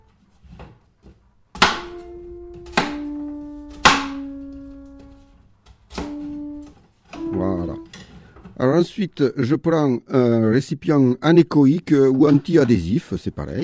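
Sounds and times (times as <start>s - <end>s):
knife chopping food into small dice: 1.6s - 2.0s
speech: 8.7s - 13.6s.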